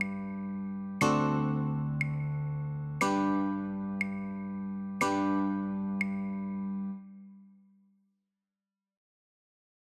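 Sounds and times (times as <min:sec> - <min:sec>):
guitar chords: 0:00.0 - 0:07.0.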